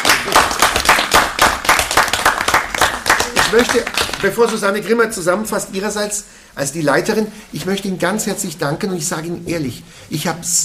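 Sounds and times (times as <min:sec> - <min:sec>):
audience applause: 0:00.0 - 0:04.5
speech: 0:03.5 - 0:10.6.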